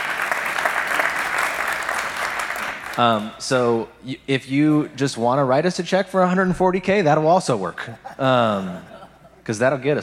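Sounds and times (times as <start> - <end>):
crowd applause: 0.0 - 3.3
speech: 3.0 - 8.9, 9.5 - 10.0
laughter: 7.8 - 9.5.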